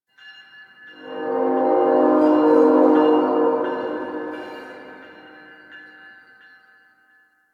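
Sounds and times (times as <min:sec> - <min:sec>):
distant train: 0:00.9 - 0:06.0.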